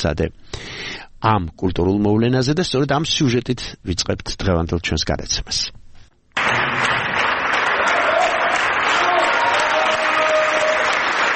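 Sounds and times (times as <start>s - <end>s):
speech: 0.0s - 5.8s
ballet audience ovation: 6.4s - 11.3s.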